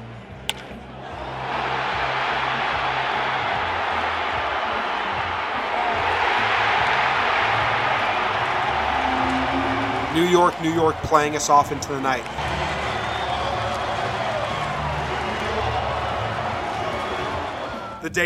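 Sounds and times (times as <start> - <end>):
baseball crowd cheering: 0.0 - 18.2
speech: 10.2 - 12.6.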